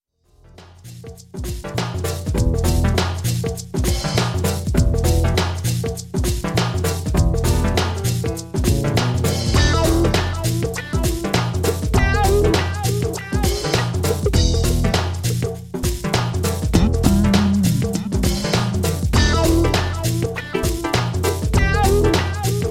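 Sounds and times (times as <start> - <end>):
jazzy music: 1.4 - 22.7.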